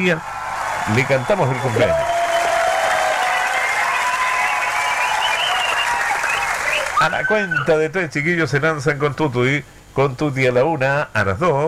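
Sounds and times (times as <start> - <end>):
speech: 0.0 - 2.1, 7.0 - 11.6
crowd applauding: 0.0 - 7.6.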